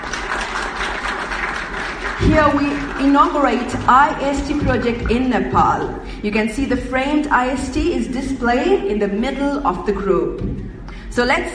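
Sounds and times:
applause: 0.0 - 4.3
speech: 2.2 - 10.6, 11.2 - 11.5.

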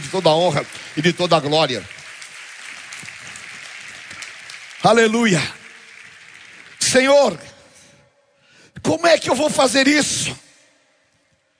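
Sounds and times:
audience applause: 0.0 - 7.9
speech: 0.1 - 2.0, 4.8 - 5.6, 6.9 - 7.5, 8.8 - 10.4.

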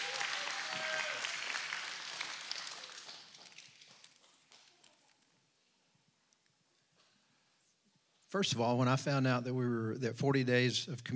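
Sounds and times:
audience applause: 0.0 - 5.1
speech: 8.3 - 11.1.

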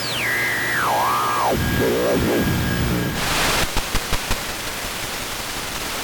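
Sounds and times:
sweeping warbling whistles from tuning analog TVs: 0.1 - 3.2
analog TV static hiss: 0.3 - 6.0
burst of crackle: 0.8 - 6.0.

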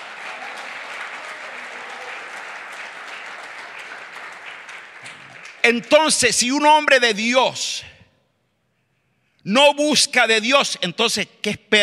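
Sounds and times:
audience applauding loudly: 0.0 - 6.3
speech: 5.6 - 7.9, 9.5 - 11.8.

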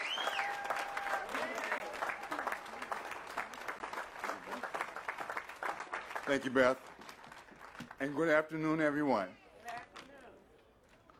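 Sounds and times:
audience applause: 0.0 - 8.1
speech: 6.3 - 6.9, 8.0 - 9.4.

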